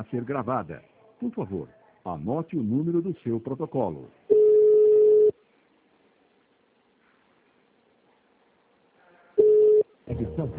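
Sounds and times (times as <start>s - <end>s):
speech: 0.0s - 4.2s
telephone line tones on a Portuguese-language service hotline: 4.3s - 5.3s, 9.4s - 9.9s.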